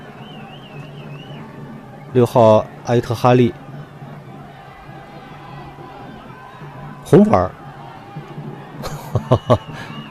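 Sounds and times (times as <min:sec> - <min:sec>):
stadium crowd of football fans cheering and roaring: 0:00.0 - 0:10.0
speech: 0:02.1 - 0:03.6, 0:07.1 - 0:07.6, 0:09.3 - 0:09.9
laughter: 0:08.7 - 0:10.0.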